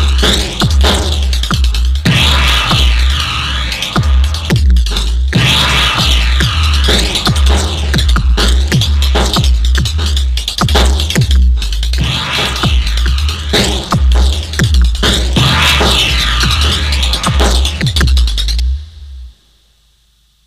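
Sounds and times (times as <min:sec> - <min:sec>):
random note beat: 0:00.0 - 0:19.3.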